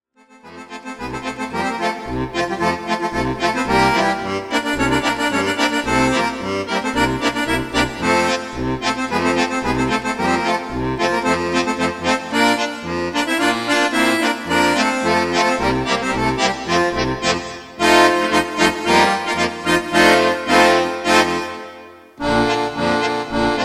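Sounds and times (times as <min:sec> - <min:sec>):
polka music: 0:00.2 - 0:23.6.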